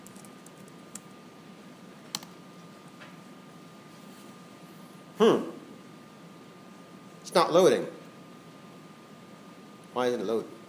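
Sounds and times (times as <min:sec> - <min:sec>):
sparse keystrokes on a computer keyboard: 0:00.0 - 0:01.1
speech: 0:05.2 - 0:05.5, 0:07.4 - 0:08.0, 0:10.0 - 0:10.6.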